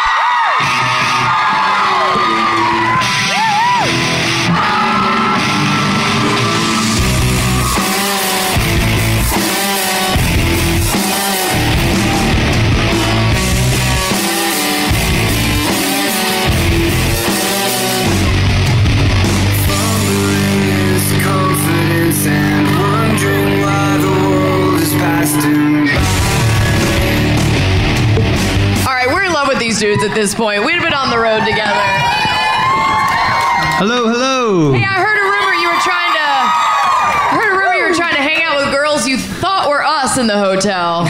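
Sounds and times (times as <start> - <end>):
crowd cheering with whoops and yells for band: 0.0 - 39.4
steady applause: 29.9 - 33.9
speech: 30.2 - 31.6, 40.4 - 41.0.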